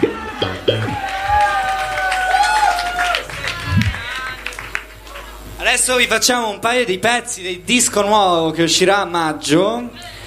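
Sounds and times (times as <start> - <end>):
audience applause: 0.5 - 5.4
speech: 5.8 - 10.1.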